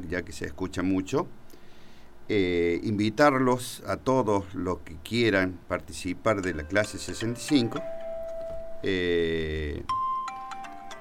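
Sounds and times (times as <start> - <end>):
speech: 0.1 - 1.4, 2.3 - 8.0, 8.8 - 10.0
mobile phone ringtone: 6.6 - 8.9, 9.9 - 10.9.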